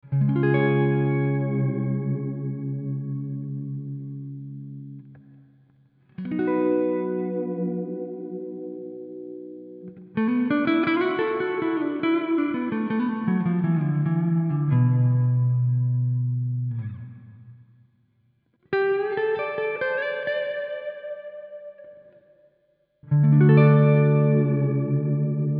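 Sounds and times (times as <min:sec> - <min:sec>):
bright concert guitar playing: 0:00.0 - 0:05.3, 0:06.1 - 0:17.6, 0:18.7 - 0:22.2, 0:23.0 - 0:25.5.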